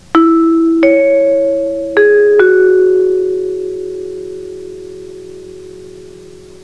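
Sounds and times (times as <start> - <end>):
chime: 0.0 - 6.6.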